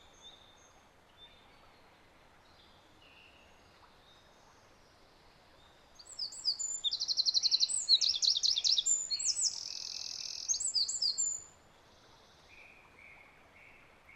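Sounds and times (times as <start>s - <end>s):
Eurasian wren Troglodytes troglodytes song with rapid trills: 6.0s - 11.4s.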